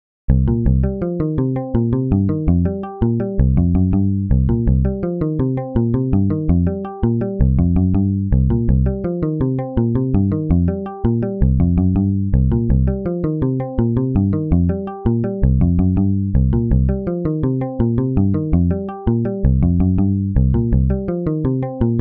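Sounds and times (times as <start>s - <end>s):
blues jam: 0.3s - 21.9s.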